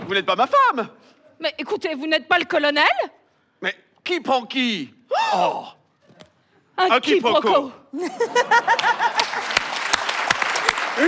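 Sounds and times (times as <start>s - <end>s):
speech: 0.1s - 5.8s, 6.8s - 9.6s
laughter: 7.9s - 11.0s
audience applause: 8.6s - 11.0s.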